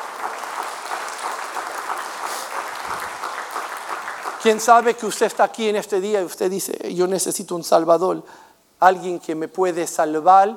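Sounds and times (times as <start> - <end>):
audience applauding: 0.0 - 5.2
speech: 4.4 - 10.5.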